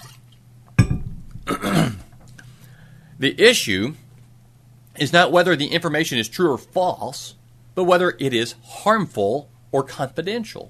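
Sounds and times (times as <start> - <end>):
dull knock as a speaker takes a drink: 0.8 - 1.6
speech: 3.2 - 4.0, 5.0 - 10.6.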